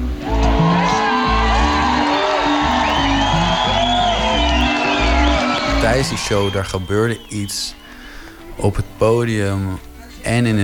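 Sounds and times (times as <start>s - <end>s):
festival tent crowd cheering: 0.0s - 8.1s
speech: 5.9s - 7.8s, 8.6s - 10.6s.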